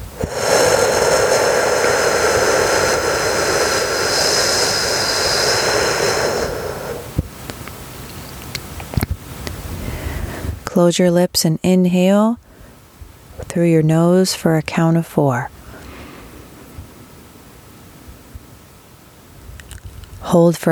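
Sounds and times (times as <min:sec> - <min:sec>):
whooshing exhale through the mouth: 0:00.0 - 0:07.3, 0:15.5 - 0:16.8
speech: 0:10.8 - 0:12.4, 0:13.5 - 0:15.6, 0:20.3 - 0:20.6.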